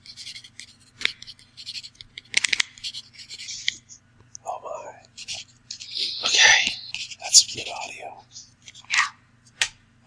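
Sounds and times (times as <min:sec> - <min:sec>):
mouth clicks imitating knife on cutting board: 0:03.6 - 0:09.1.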